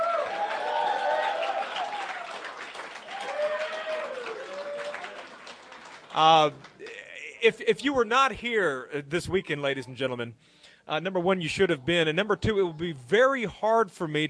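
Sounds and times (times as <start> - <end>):
loud shout: 0.0 - 2.4, 3.0 - 5.3
crowd clapping: 0.0 - 7.0
speech: 6.2 - 6.7, 7.4 - 14.2.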